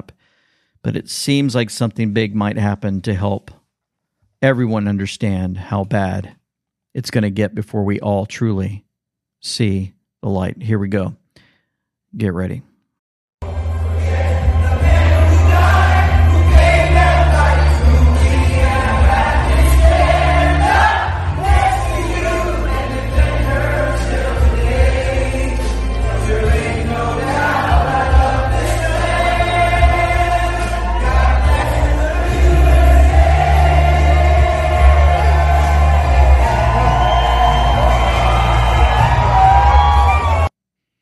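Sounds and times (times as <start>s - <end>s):
speech: 0.8s - 3.6s, 4.4s - 8.8s, 9.4s - 11.2s, 12.1s - 12.7s
excited crowd cheering in a building: 13.4s - 40.5s.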